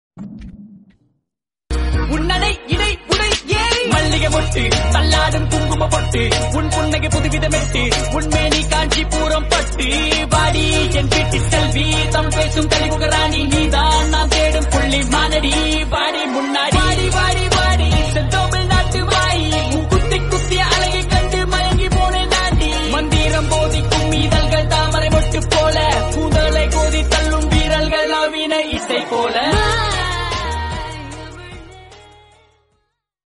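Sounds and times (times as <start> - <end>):
Tamil songs: 1.7 - 32.6.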